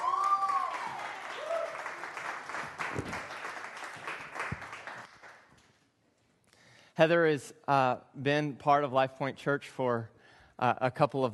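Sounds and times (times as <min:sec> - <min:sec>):
audience applause in a church welcoming a speaker to the stage: 0:00.0 - 0:05.5
speech: 0:07.0 - 0:11.3.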